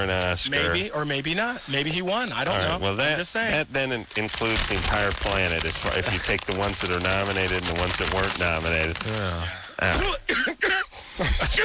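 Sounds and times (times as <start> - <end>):
speech: 0.0 - 11.6
coughing and throat clearing: 9.8 - 11.6.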